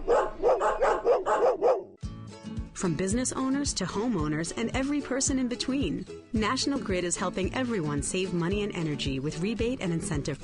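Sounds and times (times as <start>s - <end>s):
dog barking: 0.0s - 2.0s
speech: 2.8s - 10.4s.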